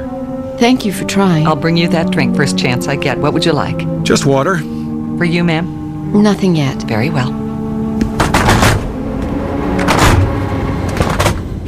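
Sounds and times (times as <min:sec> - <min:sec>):
speech: 0:00.6 - 0:07.4
aircraft door closing: 0:07.9 - 0:11.6.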